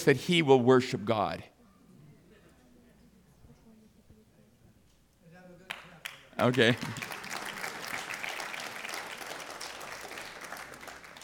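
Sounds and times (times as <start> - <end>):
speech: 0.0 - 1.5, 6.4 - 7.1
audience applause: 6.4 - 11.2.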